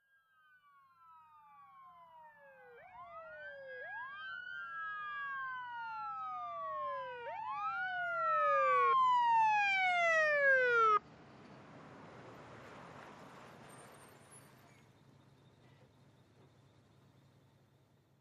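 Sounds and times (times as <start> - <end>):
ambulance siren in fast wail: 0.3 - 11.0.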